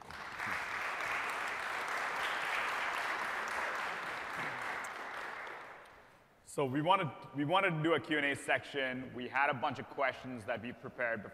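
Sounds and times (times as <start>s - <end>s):
crowd applauding: 0.0s - 6.1s
speech: 6.6s - 11.3s.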